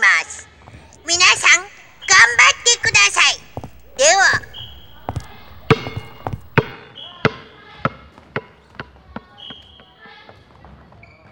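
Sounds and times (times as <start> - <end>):
ball bouncing: 1.0 - 6.7.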